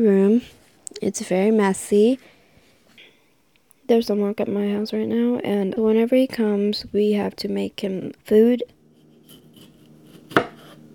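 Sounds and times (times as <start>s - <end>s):
speech: 0.0s - 2.4s, 3.9s - 8.8s
knife chopping tomatoes on a board in a kitchen: 9.2s - 10.8s.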